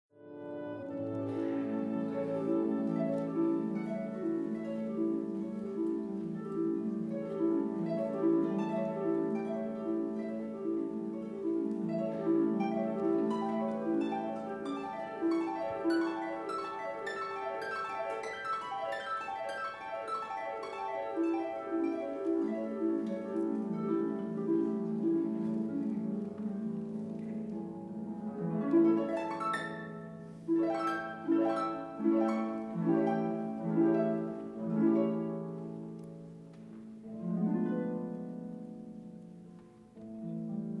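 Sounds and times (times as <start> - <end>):
harpist playing classical music: 0.2 - 40.7.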